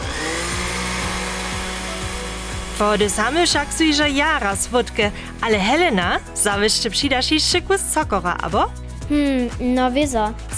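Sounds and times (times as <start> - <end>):
hand blender puréeing: 0.0 - 5.9
speech: 2.8 - 10.5.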